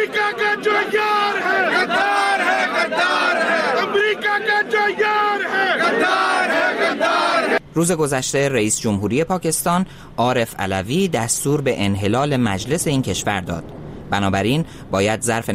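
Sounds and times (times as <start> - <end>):
protest crowd chanting slogans: 0.0 - 7.6
speech: 7.8 - 15.5.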